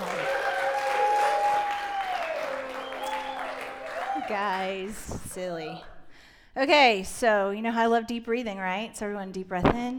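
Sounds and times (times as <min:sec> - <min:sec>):
audience applauding and cheering: 0:00.0 - 0:05.3
speech: 0:04.3 - 0:05.9, 0:06.6 - 0:09.9.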